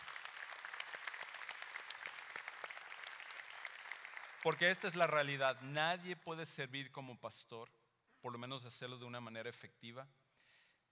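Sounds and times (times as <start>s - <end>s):
audience applause: 0.0s - 5.0s
speech: 4.4s - 10.2s.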